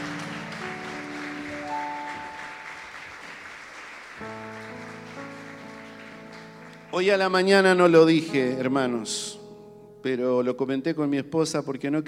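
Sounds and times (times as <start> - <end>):
audience applause: 0.0 - 6.9
speech: 7.0 - 9.4, 10.0 - 12.0.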